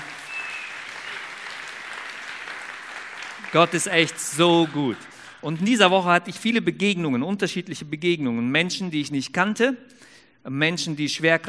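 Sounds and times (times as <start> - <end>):
audience applause: 0.0 - 5.7
speech: 3.5 - 11.4.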